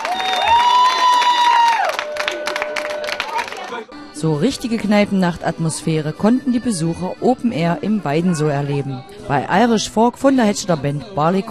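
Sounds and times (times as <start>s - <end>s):
audience applause: 0.0s - 3.9s
speech: 4.2s - 11.5s.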